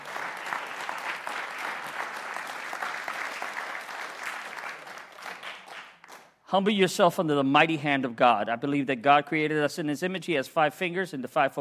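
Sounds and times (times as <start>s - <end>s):
audience hand clapping: 0.0s - 6.4s
speech: 6.5s - 11.6s.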